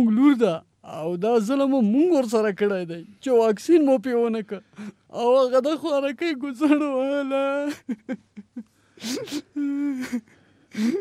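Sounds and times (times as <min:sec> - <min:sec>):
speech: 0:00.0 - 0:10.9
woman crying: 0:07.4 - 0:10.9.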